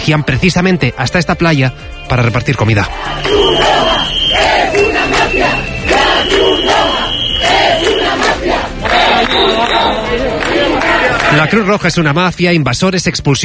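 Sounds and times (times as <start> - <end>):
speech: 0.0 - 4.5, 9.2 - 13.4
protest crowd chanting: 2.9 - 11.7.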